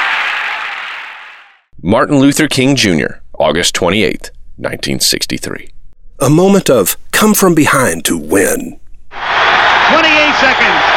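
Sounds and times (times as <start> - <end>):
hockey arena crowd roaring: 0.0 - 1.6, 9.1 - 10.9
speech: 1.8 - 10.8.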